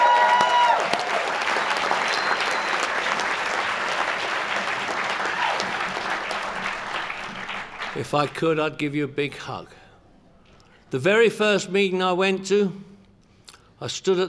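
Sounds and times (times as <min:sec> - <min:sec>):
audience applause: 0:00.0 - 0:08.4
speech: 0:08.0 - 0:09.8, 0:10.9 - 0:12.9, 0:13.8 - 0:14.2.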